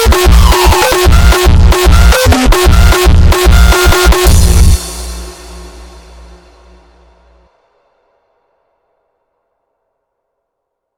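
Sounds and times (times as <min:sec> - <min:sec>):
rawstyle hardstyle music: 0:00.0 - 0:07.5.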